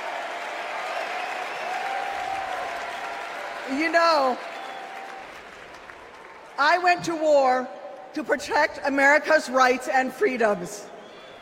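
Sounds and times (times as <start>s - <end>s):
convention crowd applauding: 0.0s - 6.6s
speech: 3.7s - 4.6s, 6.6s - 10.9s
high whistle or shout: 10.9s - 11.4s.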